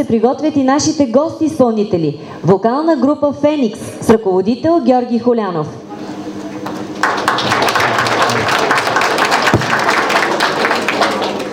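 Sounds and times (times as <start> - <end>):
speech: 0.0 - 5.8
audience applause: 6.7 - 11.5.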